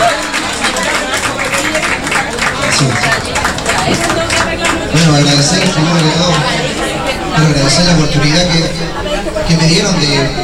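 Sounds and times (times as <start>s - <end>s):
applause: 0.0s - 6.9s
speech: 2.8s - 3.3s, 3.9s - 4.2s, 5.0s - 10.4s.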